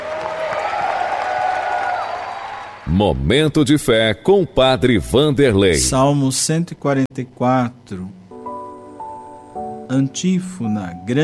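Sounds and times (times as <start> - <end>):
audience applause: 0.0 - 2.9
speech: 2.9 - 8.2, 9.9 - 11.2.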